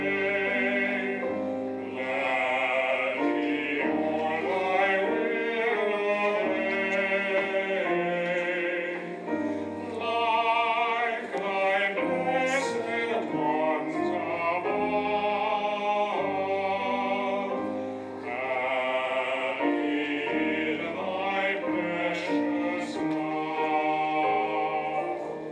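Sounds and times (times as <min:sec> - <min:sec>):
choir singing a hymn: 0:00.0 - 0:25.5.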